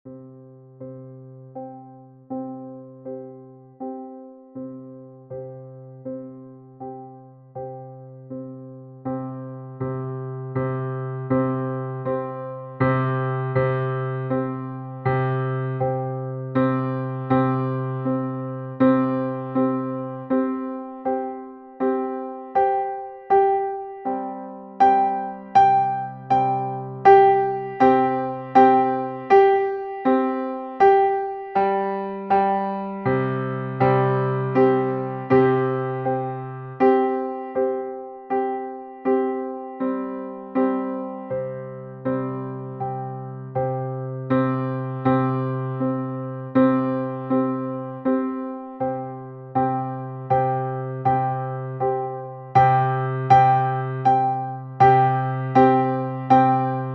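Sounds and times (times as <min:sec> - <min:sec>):
three pianos playing: 0:00.0 - 0:56.9.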